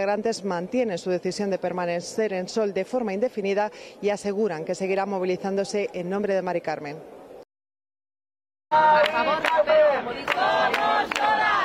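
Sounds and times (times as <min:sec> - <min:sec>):
speech: 0:00.0 - 0:07.2, 0:08.7 - 0:11.2
protest crowd chanting a slogan: 0:08.7 - 0:11.6.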